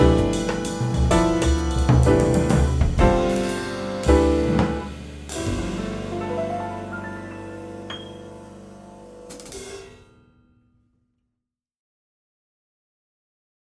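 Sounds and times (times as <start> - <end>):
backing track in Mixolydian mode: 0.0 - 9.8.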